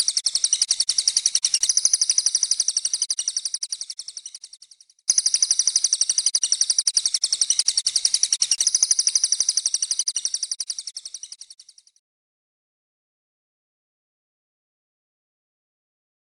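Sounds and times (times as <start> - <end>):
cililin bird singing: 0.0 - 11.9.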